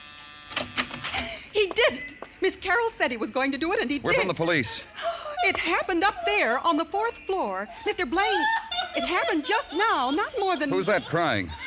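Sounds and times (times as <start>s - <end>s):
door buzzer ringing: 0.0s - 1.2s
speech: 1.6s - 11.6s
laughter: 4.2s - 6.8s, 7.6s - 11.6s.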